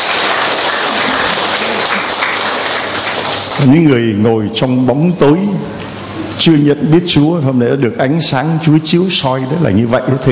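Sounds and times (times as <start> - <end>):
loud applause: 0.0 - 4.0
speech: 3.6 - 5.8, 6.4 - 10.2.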